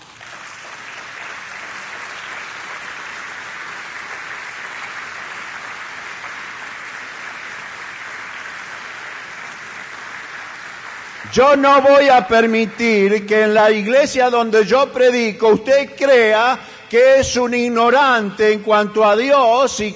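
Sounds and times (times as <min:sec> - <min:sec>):
church audience applauding: 0:00.0 - 0:13.6
speech: 0:11.3 - 0:19.9.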